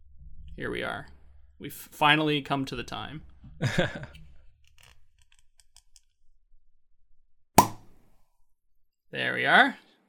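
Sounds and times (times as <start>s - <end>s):
speech: 0.6s - 4.2s, 9.1s - 9.8s
champagne bottle being opened: 7.6s - 8.0s.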